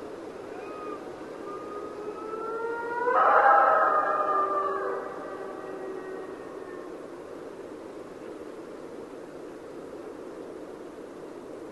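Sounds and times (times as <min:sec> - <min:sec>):
Mexican wolf howling: 0:00.5 - 0:07.1.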